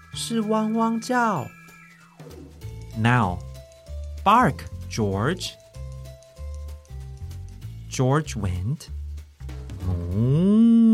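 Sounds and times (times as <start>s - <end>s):
speech: 0.2s - 1.6s, 3.0s - 3.5s, 4.2s - 5.6s, 8.0s - 9.0s, 10.1s - 10.6s
person imitating a cow mooing: 9.8s - 10.9s.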